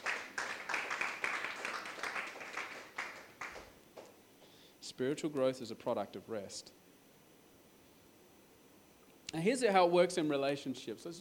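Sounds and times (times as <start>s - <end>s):
audience clapping: 0.0s - 4.2s
speech: 5.0s - 6.8s, 9.4s - 11.1s.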